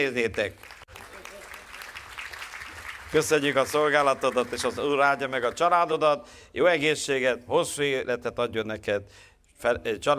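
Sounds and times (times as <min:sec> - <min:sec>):
speech: 0:00.0 - 0:00.8, 0:03.1 - 0:10.1
audience applause: 0:00.6 - 0:05.6.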